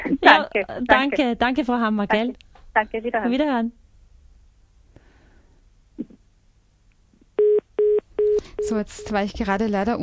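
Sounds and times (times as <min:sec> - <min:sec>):
low hum: 0:00.0 - 0:10.0
speech: 0:00.3 - 0:03.8, 0:08.6 - 0:10.0
electronic telephone beeps: 0:07.4 - 0:09.2.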